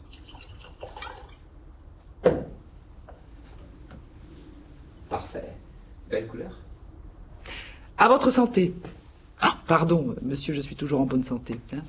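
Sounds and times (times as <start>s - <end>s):
dry white wine trickling and splashing into a glass: 0.0s - 1.5s
speech: 8.0s - 9.0s, 9.7s - 11.8s.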